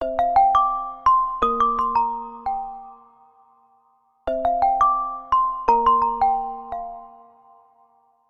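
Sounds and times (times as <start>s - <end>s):
sparkle effect: 0.0s - 8.2s.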